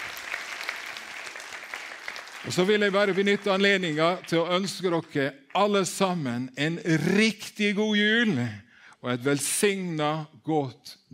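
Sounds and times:
crowd clapping: 0.0 - 5.9
speech: 2.4 - 11.0.

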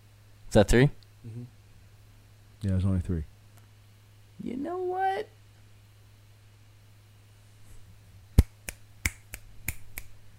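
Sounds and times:
speech: 0.5 - 1.5, 2.6 - 3.3, 4.4 - 5.4
finger snaps and hand slaps: 8.4 - 10.2.

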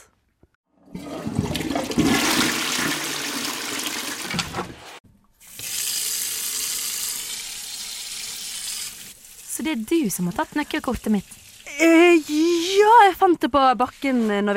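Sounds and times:
toilet flushing: 0.7 - 11.7
speech: 9.7 - 14.5.

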